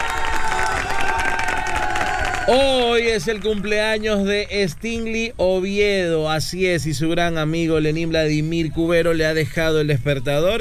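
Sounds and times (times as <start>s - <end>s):
applause: 0.0s - 4.0s
speech: 2.5s - 10.5s.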